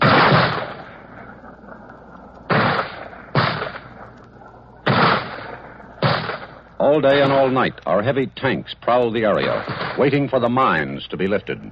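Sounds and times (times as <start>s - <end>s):
mortar shells fired in combat: 0.0s - 1.0s, 2.5s - 4.0s, 4.8s - 7.7s, 9.4s - 10.2s
speech: 6.8s - 11.7s.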